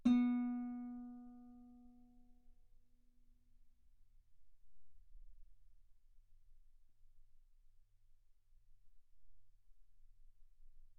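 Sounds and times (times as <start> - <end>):
guitar B3 note on B string played fortissimo: 0.0 - 1.4.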